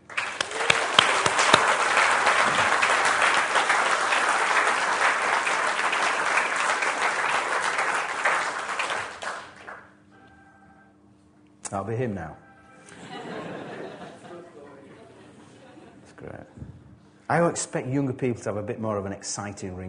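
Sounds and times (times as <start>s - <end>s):
audience applause: 0.0s - 10.0s
speech: 11.9s - 12.4s, 16.2s - 19.8s
laughter: 12.9s - 16.4s.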